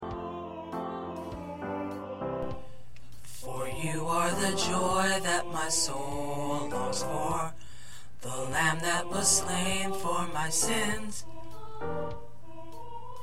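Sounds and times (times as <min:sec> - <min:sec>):
tenor choir part singing: 0:00.0 - 0:02.7, 0:03.4 - 0:07.6, 0:08.2 - 0:13.2.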